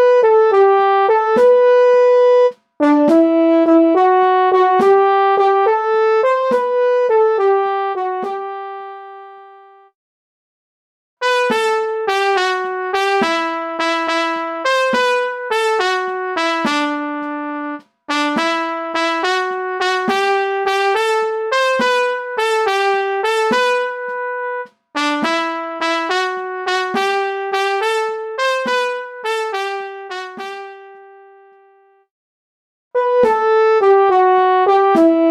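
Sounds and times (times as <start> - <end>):
single-voice MIDI melody: 0.0 - 9.9, 11.2 - 32.0, 33.0 - 35.3.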